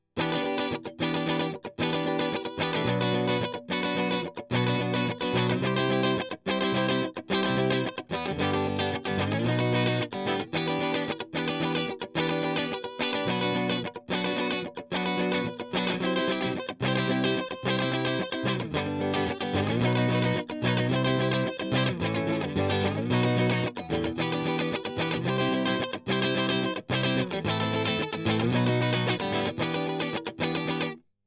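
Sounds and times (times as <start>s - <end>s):
strings strummed: 0.2s - 31.0s.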